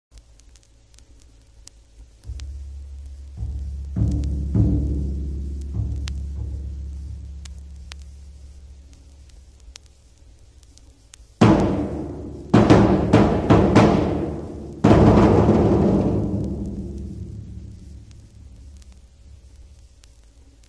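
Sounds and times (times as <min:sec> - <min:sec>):
bass drum: 0:02.2 - 0:09.3, 0:11.4 - 0:19.6.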